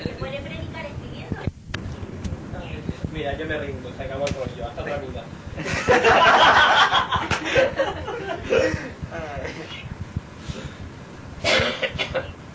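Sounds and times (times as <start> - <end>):
speech: 3.2 - 6.7
laughter: 5.6 - 9.7
rough breathy coughs: 11.4 - 12.3.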